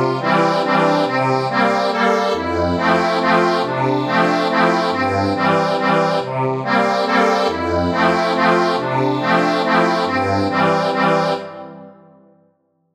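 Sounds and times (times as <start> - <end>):
accordion melody: 0.0 - 12.3.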